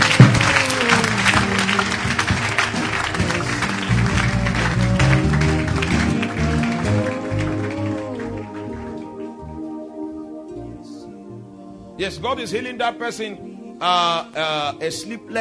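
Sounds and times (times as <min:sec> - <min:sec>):
crowd clapping: 0:00.0 - 0:09.4
sustained musical tones: 0:00.0 - 0:15.3
speech: 0:12.1 - 0:15.3.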